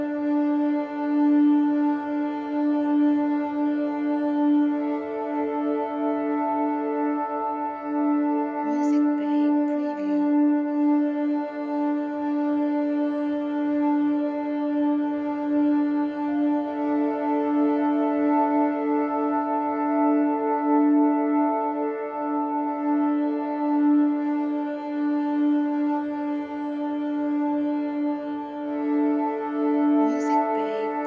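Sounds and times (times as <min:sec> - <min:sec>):
documentary tension ambience music: 0:00.0 - 0:31.0.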